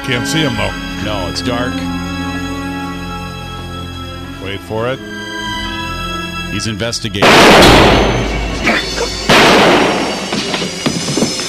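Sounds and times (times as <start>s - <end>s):
speech: 0.1s - 2.0s, 4.5s - 5.2s, 6.5s - 8.8s
gunshot in a 1980 television drama: 7.2s - 8.5s, 9.3s - 10.6s.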